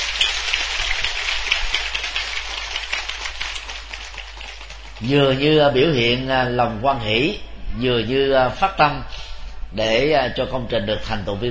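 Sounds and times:
crowd applauding: 0:00.0 - 0:05.8
speech: 0:05.0 - 0:11.5.

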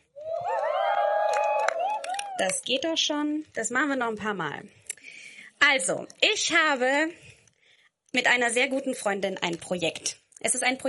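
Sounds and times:
audience cheering: 0:00.2 - 0:02.5
speech: 0:02.4 - 0:04.8, 0:05.6 - 0:07.3, 0:08.1 - 0:10.8.

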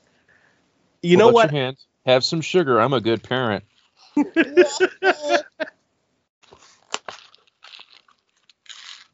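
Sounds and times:
speech: 0:01.0 - 0:05.5
laughter: 0:01.1 - 0:01.6, 0:04.2 - 0:05.7
child crunching Nerds candy: 0:06.4 - 0:09.1.

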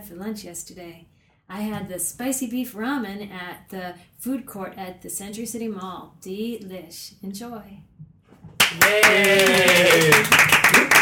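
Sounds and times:
speech: 0:00.0 - 0:07.9, 0:08.7 - 0:11.0
applause: 0:08.6 - 0:11.0.

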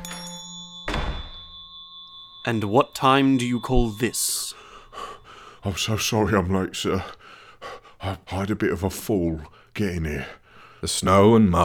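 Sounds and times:
faint high ringing tones: 0:00.0 - 0:06.4
door bursting open with a heavy thud: 0:00.9 - 0:01.5
speech: 0:02.5 - 0:04.6, 0:05.6 - 0:11.6
steady hum: 0:04.5 - 0:08.3.

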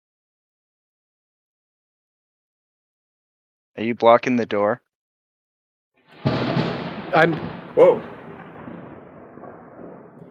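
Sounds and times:
speech: 0:03.8 - 0:04.8, 0:07.1 - 0:08.1
large explosion in the distance: 0:06.1 - 0:10.2.

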